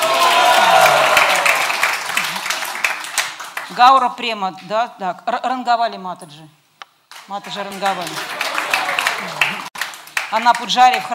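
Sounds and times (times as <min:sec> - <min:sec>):
audience applause at a temple festival welcoming devotees: 0:00.0 - 0:03.7, 0:07.5 - 0:11.1
speech: 0:03.8 - 0:06.6, 0:07.3 - 0:08.4, 0:10.3 - 0:11.1.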